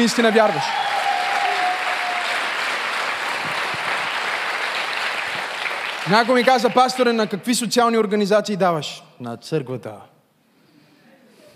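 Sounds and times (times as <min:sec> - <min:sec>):
speech: 0:00.0 - 0:00.8, 0:06.1 - 0:10.1
large audience applause: 0:00.0 - 0:07.2.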